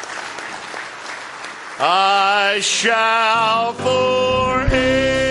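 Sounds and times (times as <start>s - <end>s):
audience hand clapping: 0.0s - 3.1s
speech: 1.8s - 5.2s.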